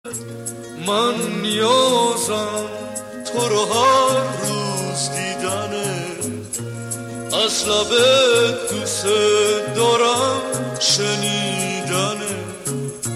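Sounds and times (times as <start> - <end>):
ringtone: 0.2 - 13.1.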